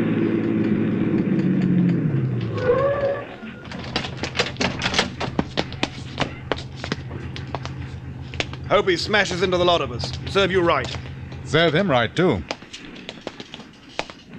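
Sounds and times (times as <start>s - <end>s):
police car engine rumbling and pulling up: 0.0s - 14.3s
brief high squeal: 2.5s - 3.6s
speech: 8.7s - 12.5s.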